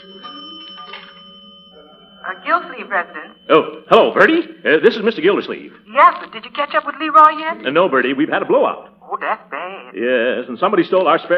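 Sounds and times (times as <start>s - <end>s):
payphone coin bells ringing: 0.0s - 5.8s
speech: 2.2s - 11.3s.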